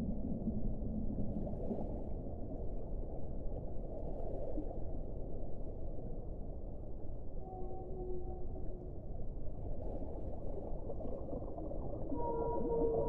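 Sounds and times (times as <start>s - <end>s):
underwater low rumble and hiss: 0.0s - 13.0s
whales singing underwater: 11.5s - 13.0s.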